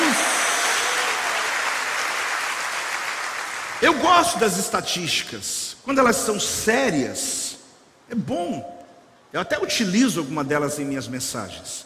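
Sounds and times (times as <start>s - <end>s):
applause: 0.0s - 3.9s
speech: 3.8s - 7.5s, 8.1s - 11.8s.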